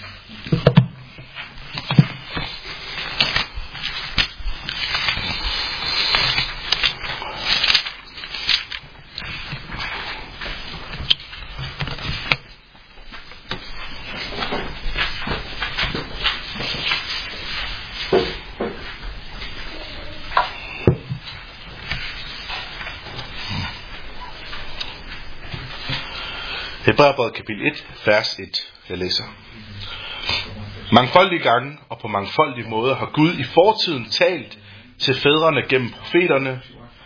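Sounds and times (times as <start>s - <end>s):
Bible pages leafed through to the Epistle to the Hebrews: 0.0s - 28.0s
speech: 27.0s - 29.5s, 30.9s - 36.8s.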